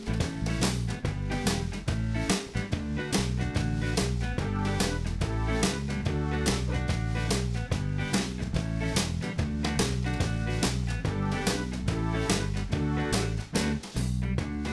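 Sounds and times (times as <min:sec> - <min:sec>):
background music: 0:00.1 - 0:14.7.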